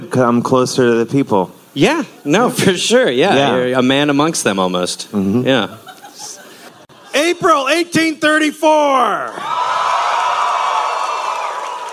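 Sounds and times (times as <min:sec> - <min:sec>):
speech: 0:00.1 - 0:06.3, 0:07.3 - 0:09.6
laughter: 0:05.4 - 0:07.4
live audience cheering and whooping: 0:09.3 - 0:11.9.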